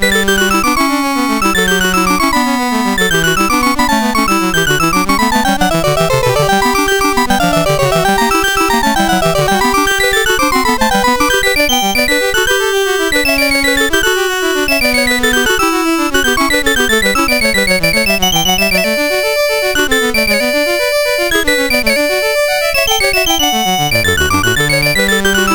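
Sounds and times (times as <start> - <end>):
MOS6581R4 chip music variation: 0.0 - 25.5.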